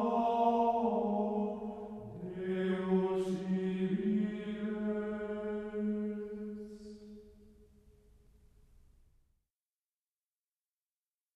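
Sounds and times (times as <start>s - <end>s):
choir singing: 0.0s - 7.2s.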